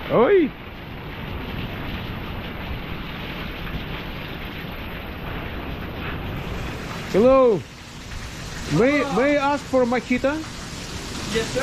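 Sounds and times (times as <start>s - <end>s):
heavy rain: 0.0s - 11.6s
speech: 0.1s - 0.7s, 7.1s - 7.7s, 8.7s - 10.6s, 11.3s - 11.6s.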